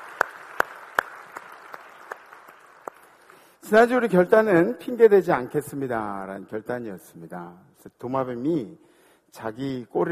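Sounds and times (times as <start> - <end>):
crowd audience applause: 0.0 - 3.5
speech: 3.7 - 10.0.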